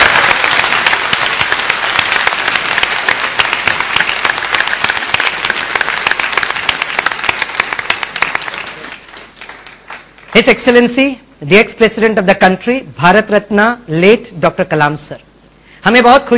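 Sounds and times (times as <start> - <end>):
audience applause: 0.0 - 10.6
speech: 10.4 - 16.3.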